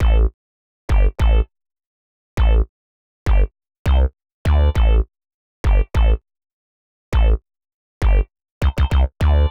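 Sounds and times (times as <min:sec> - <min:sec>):
synth bass: 0:00.0 - 0:00.3, 0:00.9 - 0:01.5, 0:02.4 - 0:02.7, 0:03.3 - 0:05.1, 0:05.7 - 0:06.2, 0:07.2 - 0:07.4, 0:08.0 - 0:09.4.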